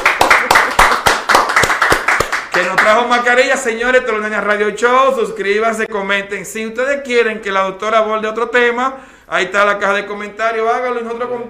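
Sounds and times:
applause: 0.0s - 3.3s
speech: 2.9s - 11.4s.

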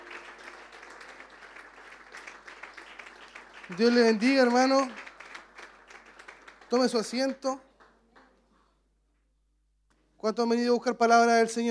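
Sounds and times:
audience applause: 0.0s - 7.5s
speech: 3.7s - 5.0s, 6.7s - 7.7s, 10.2s - 11.6s.

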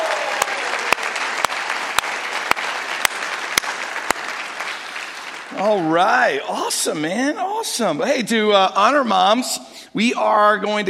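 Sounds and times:
audience at a church gathering applauding for mothers: 0.0s - 6.7s
speech: 5.6s - 10.8s.

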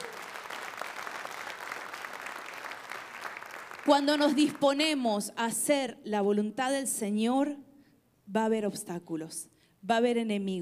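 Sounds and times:
audience applauding: 0.0s - 4.6s
speech: 3.9s - 7.6s, 8.3s - 10.5s.

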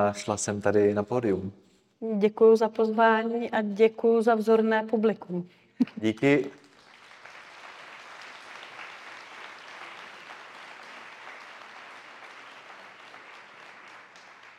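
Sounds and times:
speech: 0.0s - 6.6s
audience applause in a hall: 6.1s - 14.5s.

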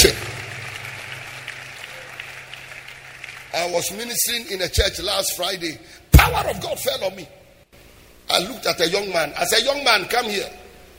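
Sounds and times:
audience clapping: 0.0s - 4.1s
speech: 3.6s - 7.4s, 8.4s - 10.6s.

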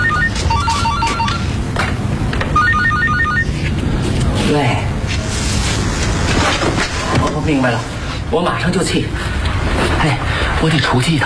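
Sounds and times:
phone ringtone: 0.0s - 1.5s, 2.6s - 3.6s
steady low hum: 0.0s - 11.2s
speech: 7.5s - 11.2s.

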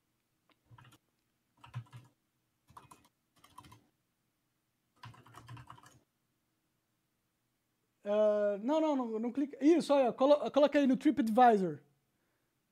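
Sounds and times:
typing a search into Google on a computer keyboard: 0.6s - 1.0s, 1.6s - 3.9s, 5.0s - 6.0s
speech: 8.1s - 11.9s.

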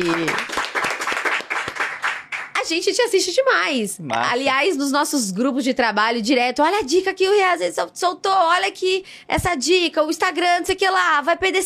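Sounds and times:
speech: 0.0s - 0.5s, 2.7s - 11.6s
people clapping for the team: 0.0s - 2.7s.

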